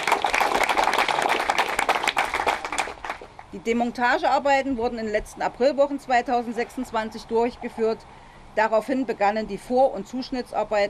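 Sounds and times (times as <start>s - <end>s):
crowd applause: 0.0s - 3.5s
speech: 3.5s - 10.8s.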